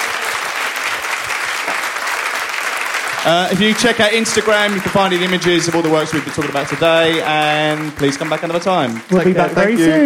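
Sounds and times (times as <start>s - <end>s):
audience applause: 0.0s - 10.0s
speech: 3.2s - 10.0s.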